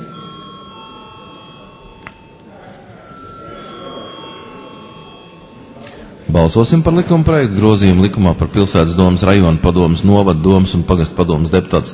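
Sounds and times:
electric division bell ringing in a parliament chamber ahead of a vote: 0:00.0 - 0:07.2
low murmur of voices: 0:00.0 - 0:11.9
speech: 0:06.3 - 0:11.9.

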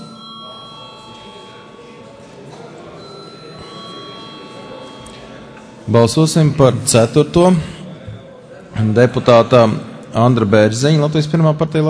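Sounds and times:
electric bell rung in a parliament chamber to call members before a vote: 0:00.0 - 0:07.5
low murmur of voices in the hall: 0:00.0 - 0:11.8
speech: 0:05.9 - 0:07.8, 0:08.8 - 0:11.8.

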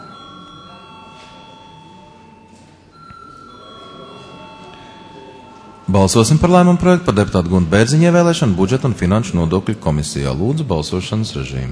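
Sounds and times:
parliament chamber bell ringing before vote: 0:00.0 - 0:08.6
faint murmuring: 0:00.0 - 0:10.5
speech: 0:05.9 - 0:11.7.

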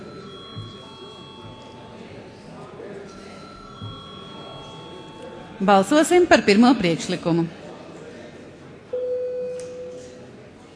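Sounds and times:
parliament voting bell ringing: 0:00.0 - 0:02.1, 0:03.1 - 0:06.3
low murmur of voices: 0:00.0 - 0:10.7
speech: 0:05.6 - 0:07.6.

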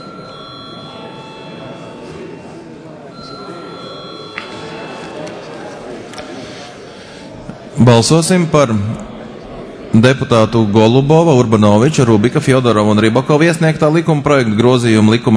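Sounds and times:
parliamentary voting bell ringing before vote: 0:00.0 - 0:06.6
murmur of many people talking: 0:00.0 - 0:15.3
speech: 0:07.8 - 0:09.1, 0:10.0 - 0:15.3.

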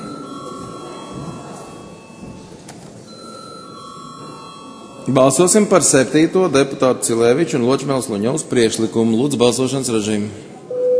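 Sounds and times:
parliament voting bell ringing as a high electronic tone: 0:00.0 - 0:05.7, 0:10.7 - 0:10.9
low murmur of the chamber: 0:00.0 - 0:10.8
speech: 0:05.1 - 0:10.6.

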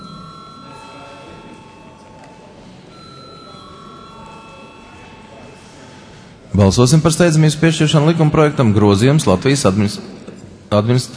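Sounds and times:
parliament chamber electric bell ringing: 0:00.0 - 0:06.2
faint murmur of voices: 0:00.0 - 0:11.1
speech: 0:06.5 - 0:11.1.

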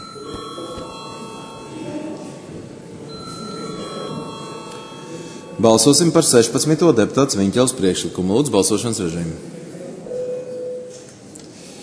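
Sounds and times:
parliament voting bell: 0:00.0 - 0:07.0
speech: 0:05.6 - 0:09.7.

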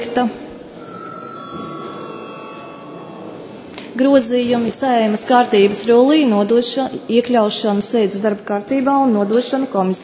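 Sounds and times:
speech: 0:00.0 - 0:00.4, 0:04.0 - 0:10.0
electric voting bell ringing: 0:00.8 - 0:03.7.

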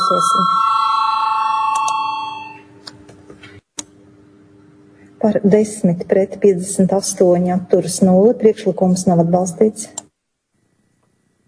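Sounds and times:
parliamentary voting bell ringing: 0:00.0 - 0:02.6
speech: 0:00.1 - 0:00.7, 0:05.2 - 0:10.0.

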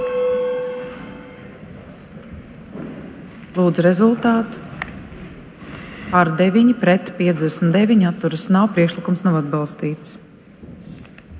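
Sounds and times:
parliament voting bell ringing: 0:00.0 - 0:01.5
low murmur of noise: 0:00.0 - 0:11.3
speech: 0:03.6 - 0:04.6, 0:06.1 - 0:10.2.

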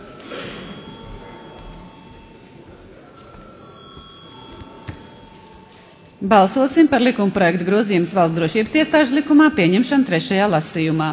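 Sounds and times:
faint murmur: 0:00.0 - 0:06.9
electric parliamentary voting bell ringing: 0:00.0 - 0:07.1
speech: 0:06.2 - 0:11.1.

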